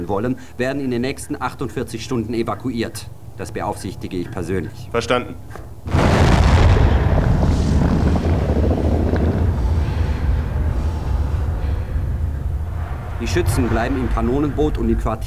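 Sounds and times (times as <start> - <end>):
speech: 0.0 - 6.1, 13.2 - 15.2
departing Soyuz spacecraft rumbling roar: 5.9 - 15.2.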